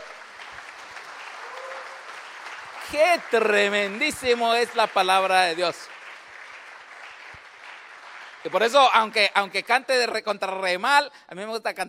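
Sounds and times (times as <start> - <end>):
audience applause: 0.0 - 9.6
faint cheering: 1.3 - 2.2
speech: 2.9 - 6.0, 8.4 - 11.8.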